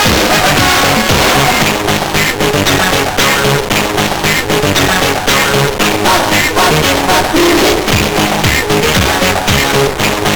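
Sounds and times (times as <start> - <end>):
SID chip CSG8580R5 pop music: 0.0 - 10.3.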